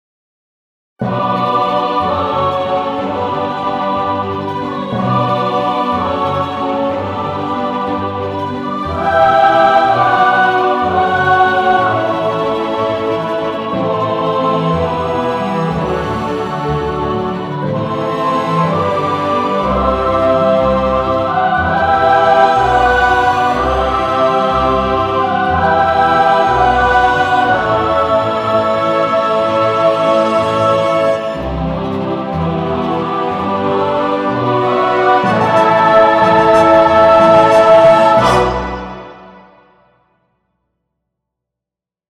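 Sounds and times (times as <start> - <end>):
epic lyrical music: 1.0 - 39.9.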